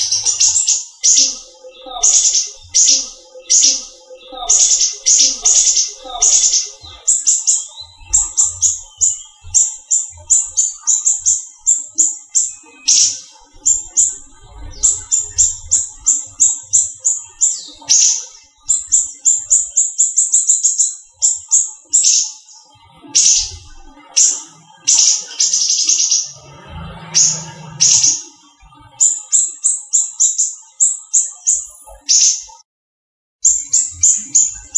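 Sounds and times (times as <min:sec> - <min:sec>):
small-leaf type leafbird song: 0:00.0 - 0:32.6, 0:33.4 - 0:34.7.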